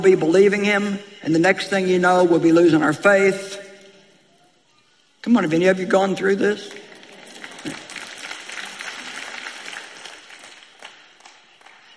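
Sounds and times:
speech: 0.0 - 3.6, 5.2 - 6.8, 7.6 - 7.8
quiet audience clapping: 6.6 - 11.9.

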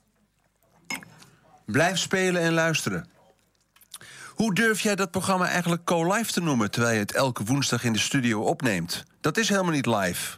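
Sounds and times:
person taking a sip of a drink: 0.0 - 1.7, 3.0 - 4.4
speech: 1.7 - 3.2, 4.4 - 10.3.

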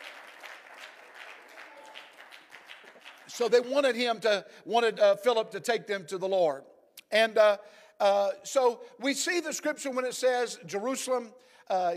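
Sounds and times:
audience clapping hands: 0.0 - 3.8
speech: 3.4 - 11.9.

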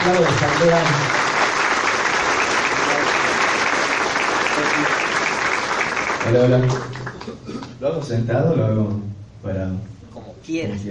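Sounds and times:
speech: 0.0 - 1.2, 6.3 - 10.8
audience applause welcoming a speaker: 0.0 - 7.4.

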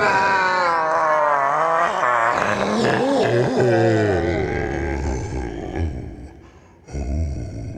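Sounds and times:
anguished scream of pain: 0.0 - 5.5.

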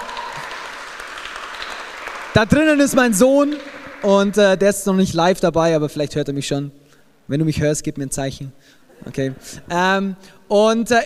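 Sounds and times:
audience applause: 0.0 - 4.6
speech: 2.3 - 11.0.

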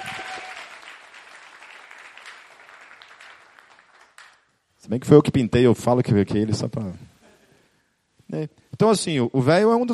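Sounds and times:
audience applause: 0.0 - 4.4
speech: 4.9 - 7.1, 8.3 - 9.9.

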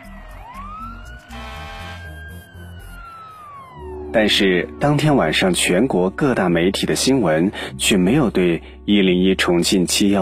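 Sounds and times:
emergency vehicle sirens: 0.0 - 6.1
speech: 4.1 - 10.2.

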